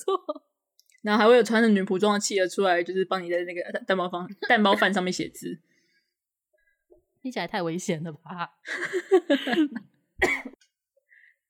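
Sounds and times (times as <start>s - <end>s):
speech: 0.0s - 5.7s, 7.2s - 10.5s
cough: 9.6s - 10.6s.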